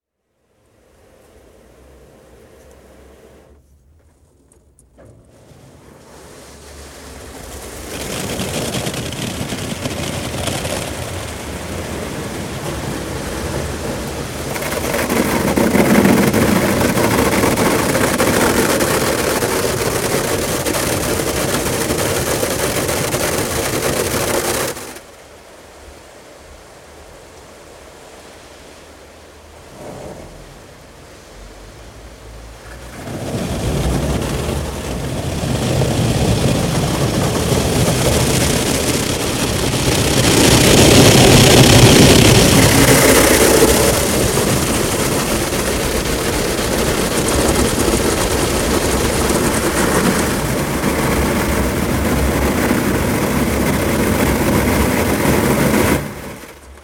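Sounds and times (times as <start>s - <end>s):
car wash recorded inside the car: 0.0s - 56.8s.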